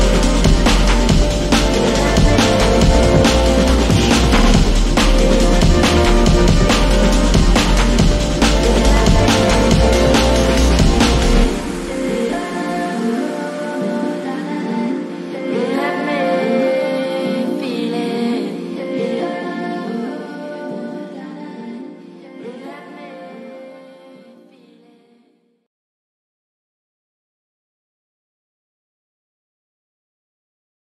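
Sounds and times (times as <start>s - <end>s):
slowed reverb remix: 0.0s - 20.5s.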